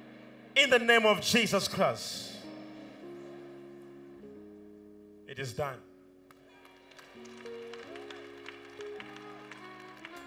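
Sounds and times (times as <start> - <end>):
speech: 0.6 - 2.3, 5.3 - 5.9
audience clapping hands: 6.2 - 10.2.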